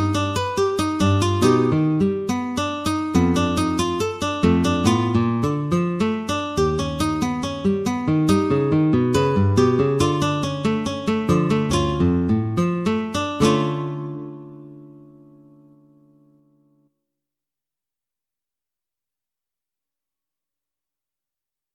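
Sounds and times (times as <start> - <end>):
guitar piece: 0.0 - 16.9.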